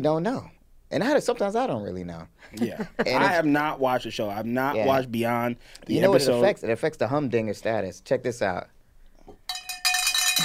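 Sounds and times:
speech: 0:00.0 - 0:08.8
bell ringing: 0:09.5 - 0:10.4.

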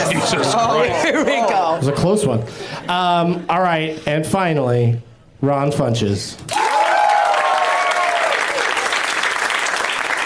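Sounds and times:
speech: 0:00.3 - 0:06.6
crowd applauding: 0:06.5 - 0:10.2.

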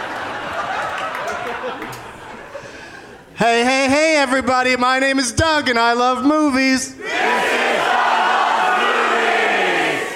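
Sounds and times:
laughter: 0:00.0 - 0:03.4
speech: 0:03.4 - 0:07.6
live audience yelling: 0:07.0 - 0:10.1.

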